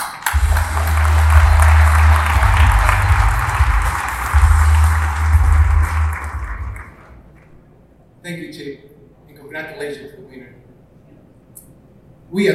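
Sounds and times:
audience applause: 0.0 - 7.4
speech: 12.3 - 12.5.

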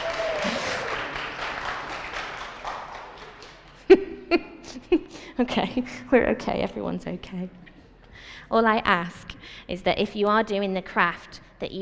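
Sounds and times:
audience round of applause: 0.0 - 3.9
laughter: 0.0 - 5.9
speech: 5.4 - 7.7, 8.5 - 11.8.

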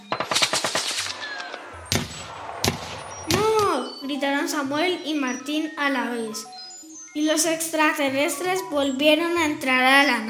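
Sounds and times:
gunfire from many soldiers' guns: 0.0 - 3.8
speech: 4.1 - 6.6, 7.2 - 10.2.

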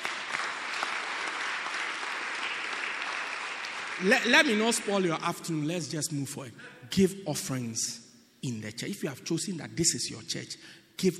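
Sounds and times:
audience clapping: 0.0 - 5.6
speech: 4.0 - 11.1.

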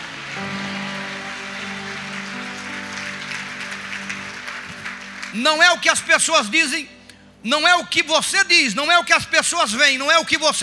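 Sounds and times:
audience applauding: 0.0 - 6.3
sustained keyboard chords: 0.0 - 8.9
speech: 5.3 - 10.6.

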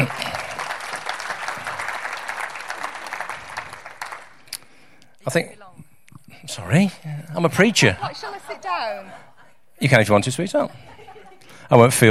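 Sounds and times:
crowd applause: 0.0 - 4.5
speech: 5.3 - 5.6, 6.4 - 9.2, 9.8 - 10.9, 11.7 - 12.0
laughter: 7.8 - 9.6, 10.5 - 11.6.

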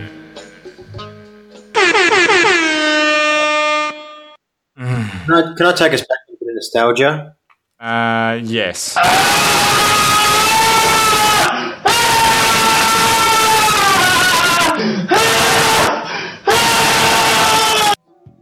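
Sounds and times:
blood-curdling high-pitched scream: 1.8 - 4.4, 9.0 - 18.0
speech: 5.3 - 10.6.

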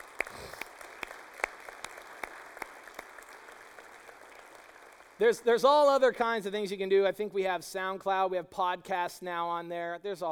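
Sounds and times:
audience applause: 0.0 - 5.2
speech: 5.2 - 10.3.

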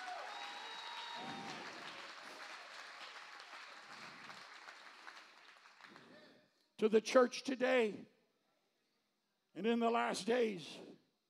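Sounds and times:
crowd clapping: 0.0 - 6.4
speech: 6.8 - 8.1, 9.6 - 10.9.

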